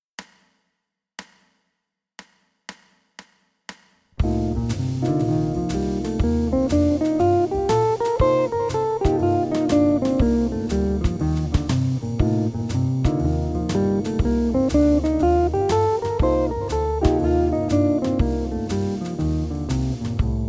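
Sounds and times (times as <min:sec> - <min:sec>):
guitar in Locrian mode: 0:04.2 - 0:20.3.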